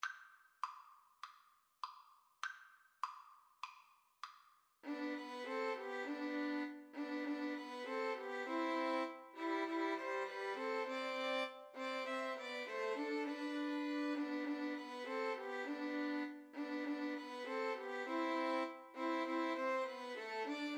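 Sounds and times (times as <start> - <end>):
violins playing a Christmas tune: 4.8 - 20.7.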